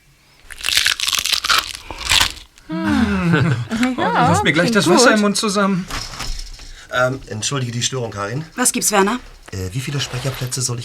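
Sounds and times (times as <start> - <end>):
crunchy snack bar being bitten: 0.4 - 2.6
laughter: 2.7 - 5.3
speech: 2.7 - 6.0, 6.9 - 10.8.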